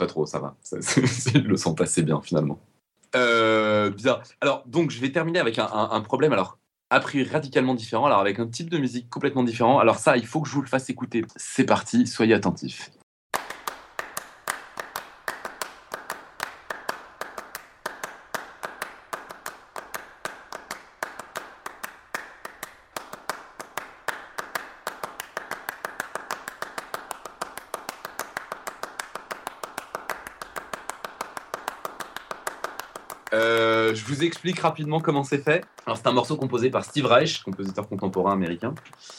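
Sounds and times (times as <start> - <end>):
speech: 0.0 - 13.0, 34.2 - 39.1
two people clapping hands in rhythm: 13.4 - 39.1.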